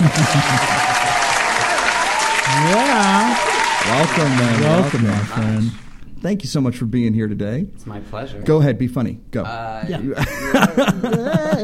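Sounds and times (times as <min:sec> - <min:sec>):
laughter: 0:00.0 - 0:01.9, 0:10.0 - 0:11.6
audience applause welcoming a guest: 0:00.0 - 0:06.0
speech: 0:00.1 - 0:01.0, 0:02.5 - 0:11.6.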